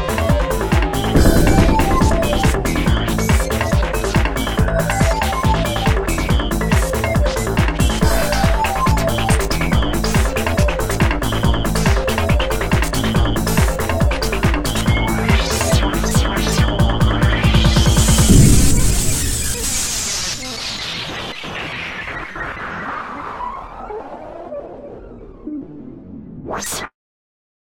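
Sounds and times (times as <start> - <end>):
synthesizer: 0.5 - 20.4.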